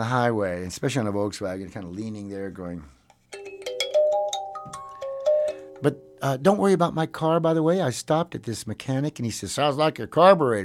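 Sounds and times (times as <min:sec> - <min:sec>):
speech: 0:00.0 - 0:03.0, 0:05.8 - 0:10.6
kalimba melody: 0:03.3 - 0:06.2.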